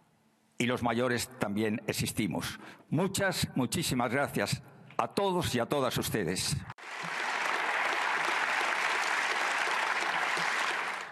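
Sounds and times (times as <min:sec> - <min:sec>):
speech: 0:00.6 - 0:07.1
audience applause: 0:06.8 - 0:11.0.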